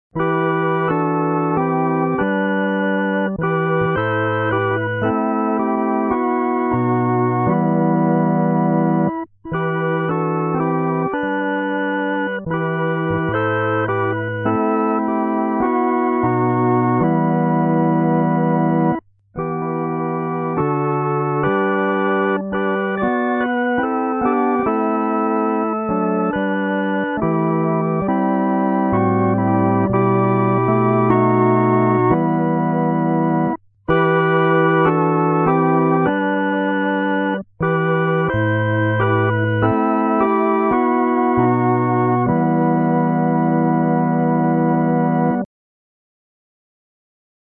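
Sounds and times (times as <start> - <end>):
solo music: 0.1 - 45.5.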